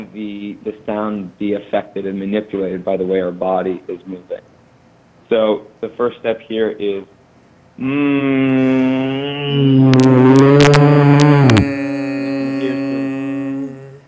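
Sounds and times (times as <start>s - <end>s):
speech: 0.0s - 4.5s, 5.3s - 7.2s, 7.8s - 10.6s
person humming sliding down and up: 7.8s - 14.0s.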